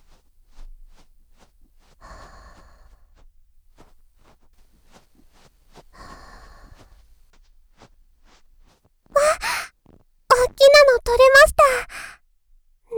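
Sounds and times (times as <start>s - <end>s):
ASMR ear cleaning in right ear: 3.8s - 12.1s.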